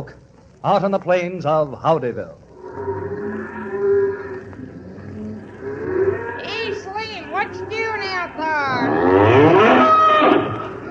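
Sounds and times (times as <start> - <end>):
speech: 0.0 - 2.9
cattle on the plains mooing: 2.6 - 10.8.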